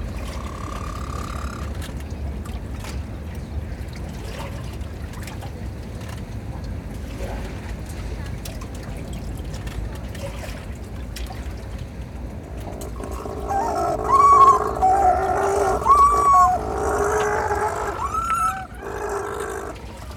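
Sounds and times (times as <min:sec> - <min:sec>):
fairy penguins mating in St Kilda Melbourne Australia: 0:00.1 - 0:01.8, 0:12.4 - 0:20.1.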